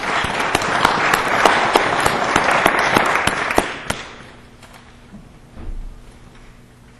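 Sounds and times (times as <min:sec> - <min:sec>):
audience applause: 0:00.0 - 0:04.3.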